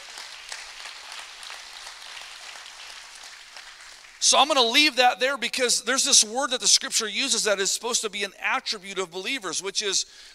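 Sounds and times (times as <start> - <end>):
crowd clapping: 0.0 - 4.7
speech: 4.2 - 10.3.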